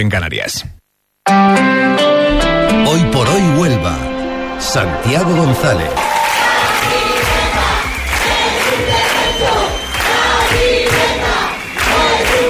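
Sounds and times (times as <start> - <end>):
speech: 0.0 - 6.1
protest crowd chanting slogan: 5.9 - 12.4.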